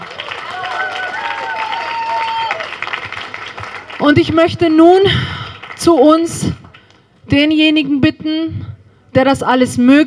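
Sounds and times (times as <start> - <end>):
crowd applause: 0.0 - 4.2
cheers and whistles: 0.2 - 2.8
speech: 4.0 - 6.6, 7.3 - 10.0.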